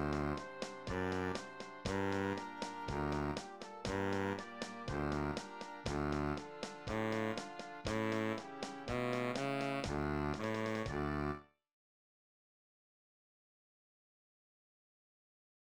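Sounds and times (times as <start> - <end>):
E-flat tuba: 0.0 - 11.4.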